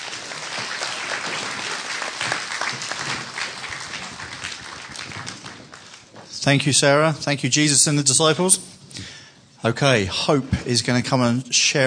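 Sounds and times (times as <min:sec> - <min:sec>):
audience clapping: 0:00.0 - 0:06.3
speech: 0:06.4 - 0:08.8, 0:09.6 - 0:11.8.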